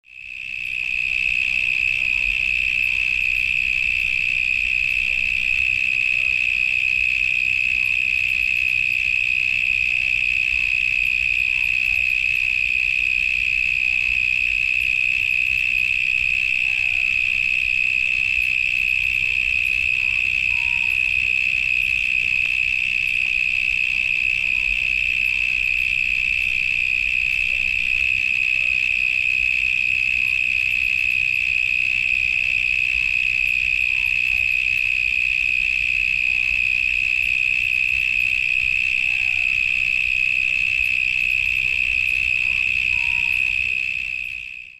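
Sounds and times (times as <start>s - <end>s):
cicadas: 0.0s - 44.7s.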